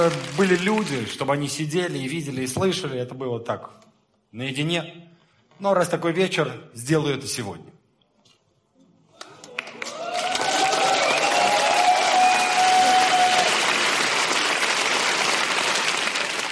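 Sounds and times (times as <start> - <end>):
audience applause: 0.0 - 1.3, 9.1 - 16.5
speech: 0.0 - 7.7.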